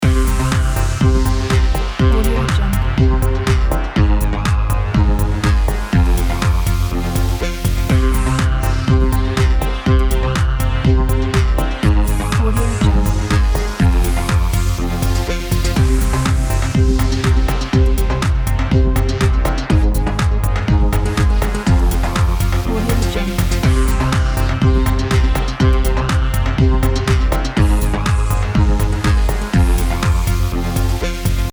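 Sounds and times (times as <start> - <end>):
powerful sport music loop: 0.0 - 31.5.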